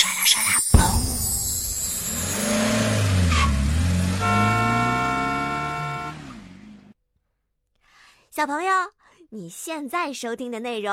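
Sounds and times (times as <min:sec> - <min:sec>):
speech: 0:00.3 - 0:01.0, 0:08.4 - 0:10.9
car driving away: 0:00.8 - 0:06.9.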